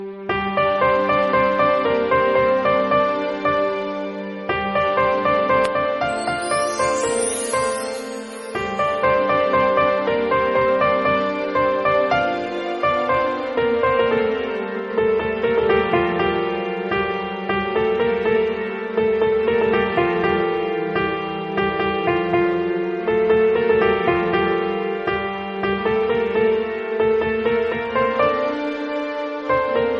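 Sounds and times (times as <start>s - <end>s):
piano: 0.0s - 29.9s.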